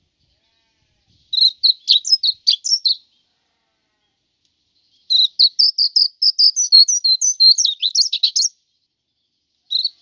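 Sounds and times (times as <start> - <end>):
white-eye twittering song: 1.3 - 3.0, 5.0 - 8.6, 9.7 - 10.0.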